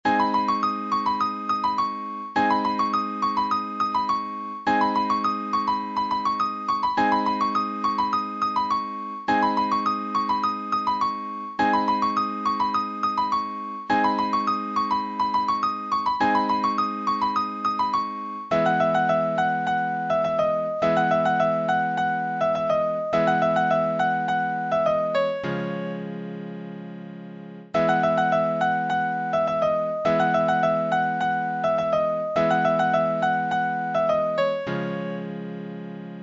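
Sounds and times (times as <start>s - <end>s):
piano: 0.0s - 36.2s.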